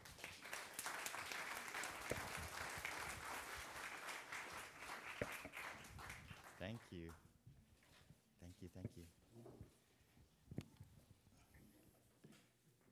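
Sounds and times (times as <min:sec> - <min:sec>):
audience applause welcoming a pastor onto the stage: 0:00.0 - 0:06.8
speech: 0:02.1 - 0:02.4, 0:06.6 - 0:07.3, 0:08.4 - 0:09.8.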